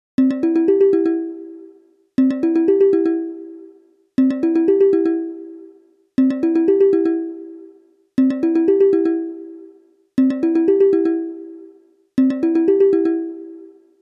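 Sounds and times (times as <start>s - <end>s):
ringtone: 0.2s - 14.0s.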